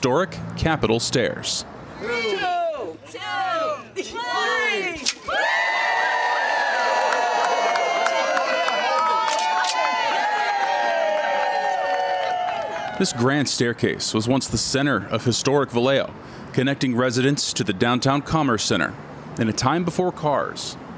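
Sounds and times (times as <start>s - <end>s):
speech: 0.0s - 5.6s, 13.0s - 20.9s
large crowd cheering and shouting at a ribbon cutting: 2.0s - 13.5s.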